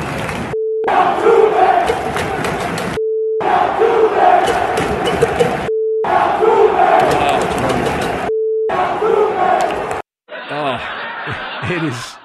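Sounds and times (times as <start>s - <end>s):
Yankee Stadium baseball crowd chanting: 0.8s - 11.2s
short steady mid-pitched beep: 5.1s - 6.1s, 8.3s - 8.7s
laughter: 10.3s - 12.2s.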